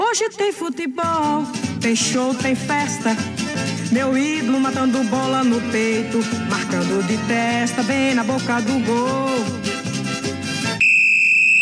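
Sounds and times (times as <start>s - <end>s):
speech: 0.1s - 9.6s
referee's whistle blast at a football match: 10.8s - 11.5s.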